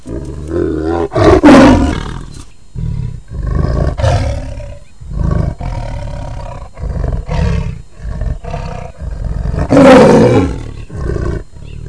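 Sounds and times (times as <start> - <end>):
lion roar: 0.0 - 11.8.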